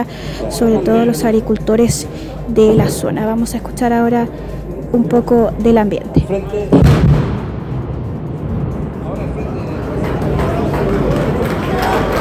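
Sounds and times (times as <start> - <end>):
speech: 0.0 - 7.2
rock-blasting detonation: 6.7 - 10.6
crowd applauding and cheering: 9.1 - 12.1.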